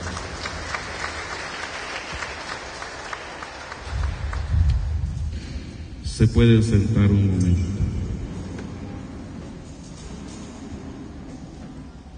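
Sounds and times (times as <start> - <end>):
audience clapping hands: 0.0 - 5.0
speech: 6.2 - 7.8.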